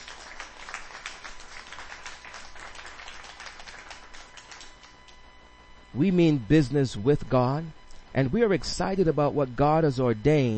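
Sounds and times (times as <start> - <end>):
audience clapping: 0.0 - 5.2
speech: 6.0 - 10.5.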